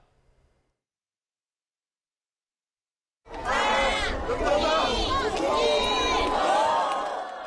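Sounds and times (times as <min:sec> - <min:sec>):
crowd cheering and shouting: 0:03.3 - 0:07.4.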